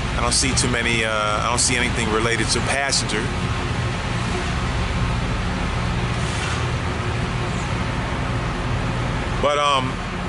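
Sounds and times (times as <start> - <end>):
speech: 0.2 - 3.7, 9.4 - 10.0
street traffic: 3.3 - 9.4.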